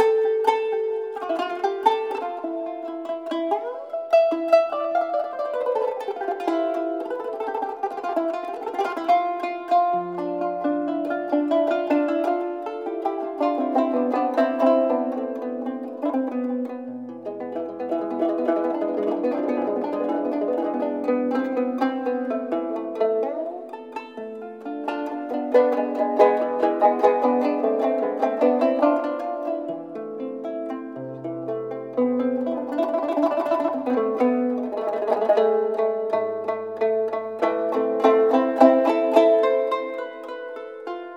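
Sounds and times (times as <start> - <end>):
kanun taksim in makam nihavend: 0.0 - 41.1.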